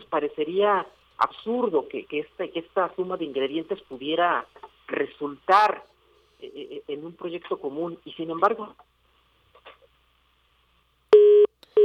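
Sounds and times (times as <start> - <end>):
speech: 0.1 - 8.9
telephone busy signal after a lost phone line: 11.2 - 11.8.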